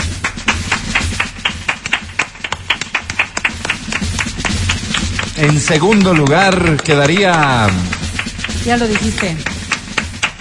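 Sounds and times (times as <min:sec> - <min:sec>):
people clapping: 0:00.0 - 0:10.3
speech: 0:05.4 - 0:07.9, 0:08.6 - 0:09.5.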